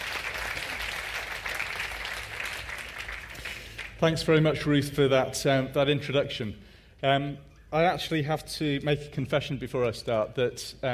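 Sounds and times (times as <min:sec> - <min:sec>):
audience clapping: 0:00.0 - 0:04.2
speech: 0:04.0 - 0:10.9.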